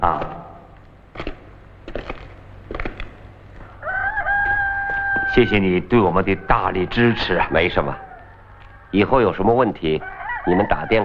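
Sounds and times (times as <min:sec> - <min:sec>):
speech: 0:00.0 - 0:00.4, 0:05.4 - 0:08.0, 0:08.9 - 0:11.0
chickens clucking: 0:02.8 - 0:11.0
rooster crowing: 0:03.6 - 0:11.0.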